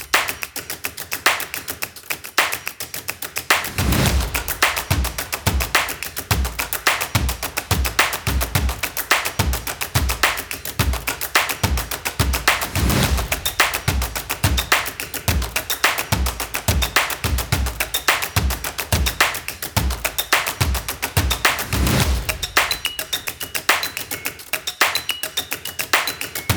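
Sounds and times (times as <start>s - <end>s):
percussion: 0.0s - 26.5s
energetic stomping: 3.7s - 22.8s.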